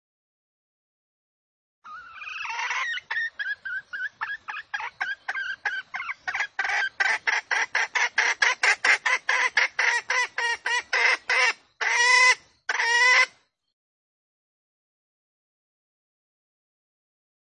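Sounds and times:
female junglefowl squawking lure call: 1.8s - 13.4s.

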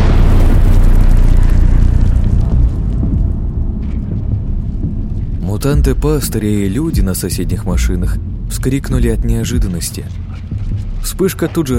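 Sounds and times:
explosion: 0.0s - 7.1s
speech: 5.6s - 11.7s.

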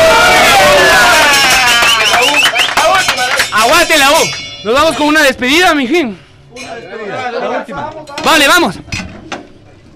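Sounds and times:
crowd cheering and whooping: 0.0s - 2.8s
clapping: 1.0s - 4.4s
whistles: 1.5s - 3.0s
speech: 4.6s - 8.8s.

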